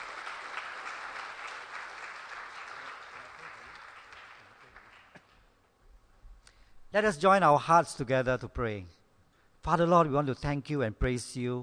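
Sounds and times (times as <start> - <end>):
audience applause welcoming a guest: 0.0 - 5.3
speech: 6.9 - 9.0, 9.6 - 11.6.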